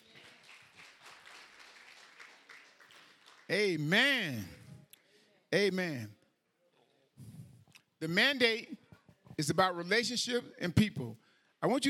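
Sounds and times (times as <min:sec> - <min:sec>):
audience clapping hands: 0:00.0 - 0:04.0
speech: 0:03.5 - 0:04.6, 0:05.5 - 0:06.2, 0:08.0 - 0:08.8, 0:09.4 - 0:11.8.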